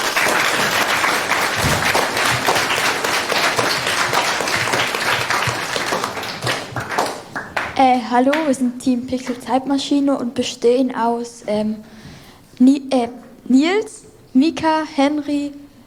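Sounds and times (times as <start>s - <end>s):
applause: 0.0s - 8.5s
speech: 7.8s - 12.0s, 12.6s - 15.6s.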